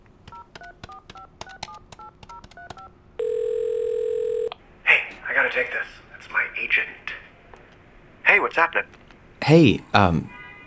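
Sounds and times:
two-toned telephone keypad beeps: 0.3s - 4.5s
speech: 5.6s - 7.0s, 8.4s - 10.4s.

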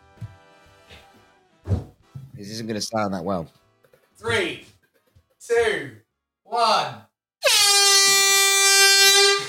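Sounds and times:
speech: 2.4s - 3.6s, 4.2s - 4.7s
real air horn blast: 7.4s - 9.4s.

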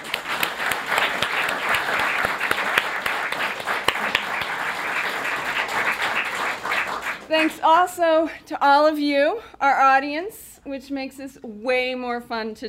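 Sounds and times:
audience applause: 0.0s - 7.5s
speech: 7.4s - 12.6s.

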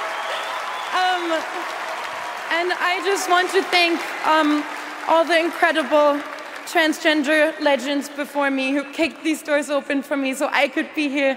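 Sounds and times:
audience cheering: 0.0s - 6.6s
audience applause: 0.0s - 7.5s
speech: 1.3s - 11.3s.

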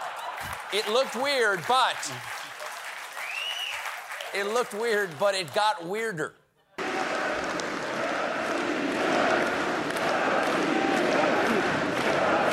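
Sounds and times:
speech: 0.7s - 2.4s, 4.3s - 6.4s
crowd chanting at a baseball game: 6.8s - 12.5s.

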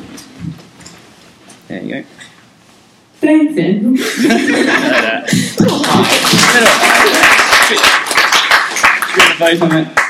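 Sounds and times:
speech: 1.7s - 2.2s, 3.2s - 8.0s, 9.4s - 10.0s
laughter: 4.0s - 7.9s
audience cheering: 5.6s - 8.2s
audience applauding: 5.6s - 10.0s.

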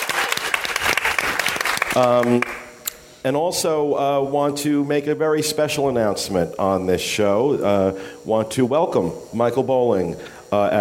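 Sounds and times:
audience applause: 0.0s - 2.6s
speech: 2.0s - 2.6s, 3.2s - 10.7s.

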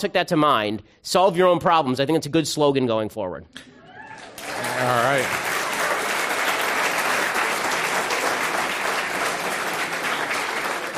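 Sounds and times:
speech: 0.0s - 5.6s
audience applause and standing ovation: 4.1s - 10.9s.

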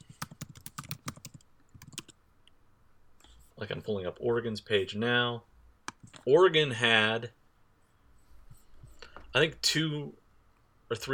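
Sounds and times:
typing on a computer keyboard: 0.0s - 2.2s
speech: 3.6s - 5.5s, 6.3s - 7.4s, 9.3s - 10.2s, 10.9s - 11.1s.

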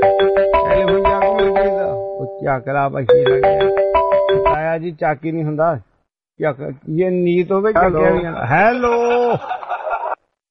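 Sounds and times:
telephone electronic ringtone: 0.0s - 2.5s, 3.1s - 4.6s
speech: 2.5s - 9.6s
laughter: 8.9s - 10.2s.

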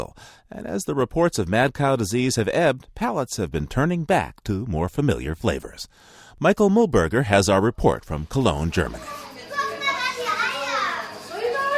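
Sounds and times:
speech: 0.0s - 9.3s
preschool children chattering and squealing in a room: 8.8s - 11.7s.

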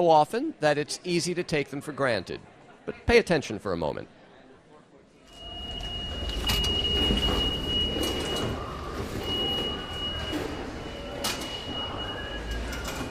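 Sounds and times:
speech: 0.0s - 4.2s
subway train rumbling: 5.5s - 13.0s.

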